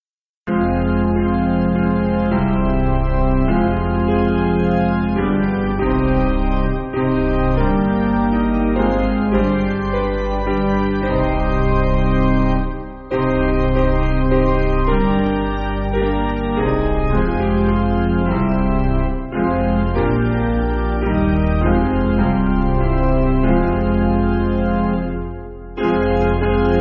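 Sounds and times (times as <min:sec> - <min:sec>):
piano: 0:00.5 - 0:26.8.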